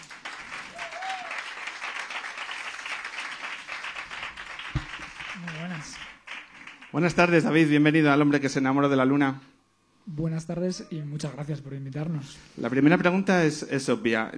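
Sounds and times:
audience applause: 0.0 - 7.1
cheering voices: 0.6 - 1.7
speech: 5.4 - 6.1, 6.9 - 9.5, 10.1 - 14.3.

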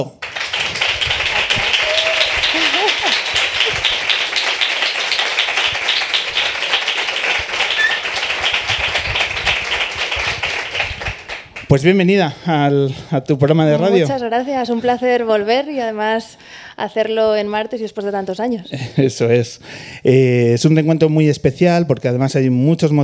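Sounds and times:
audience applause: 0.0 - 11.7
laughter: 1.3 - 4.0
faint voices or whistles: 7.8 - 8.1
speech: 11.7 - 23.0.

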